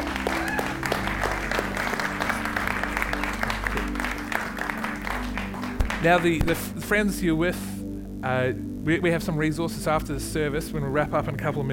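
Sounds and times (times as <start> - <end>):
audience applause: 0.0 - 6.6
speech: 6.0 - 11.7.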